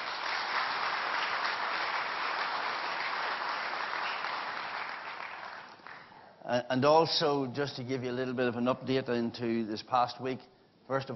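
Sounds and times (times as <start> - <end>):
audience applause: 0.0 - 6.1
speech: 6.5 - 11.1.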